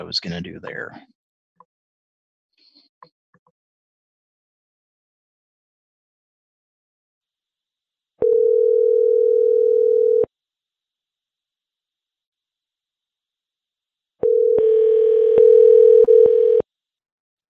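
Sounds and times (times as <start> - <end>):
speech: 0.0 - 1.2
telephone ringback tone on a call to a locksmith: 8.2 - 10.3, 14.2 - 16.6.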